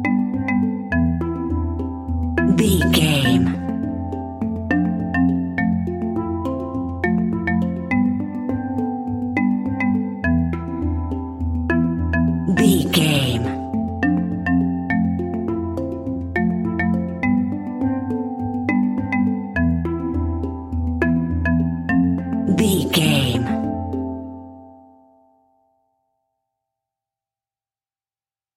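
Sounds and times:
marimba: 0:00.0 - 0:25.7
funky hang drum: 0:03.5 - 0:12.9, 0:13.7 - 0:22.5.

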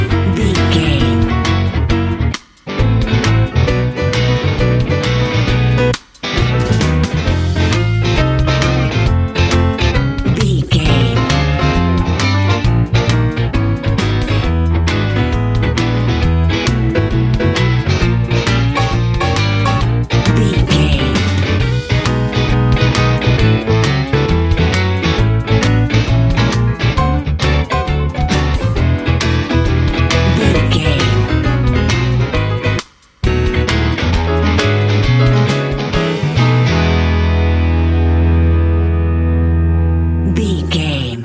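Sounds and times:
happy warm Texas blues music: 0:00.0 - 0:40.3.

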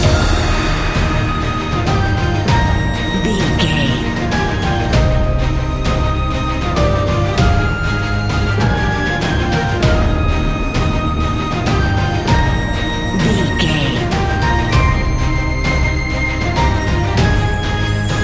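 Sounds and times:
epic adventure music: 0:00.0 - 0:18.2.

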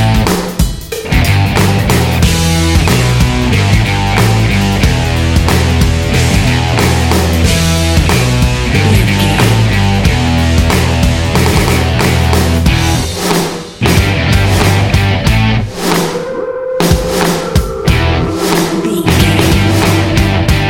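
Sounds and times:
powerful blues rock music: 0:00.0 - 0:20.6
gritty vocal singing: 0:08.3 - 0:10.4, 0:16.1 - 0:20.6.

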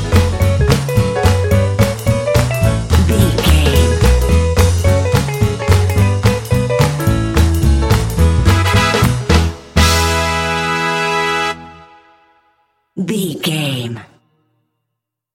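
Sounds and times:
happy swing music: 0:00.0 - 0:12.2.

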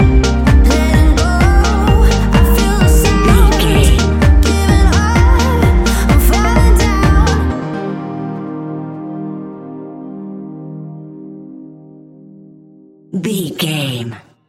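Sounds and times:
fast paced club music: 0:00.0 - 0:07.6.

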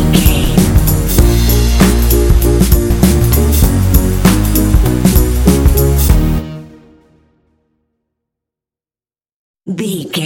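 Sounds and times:
catchy upbeat funky happy pop hip hop music bed: 0:00.0 - 0:06.4.

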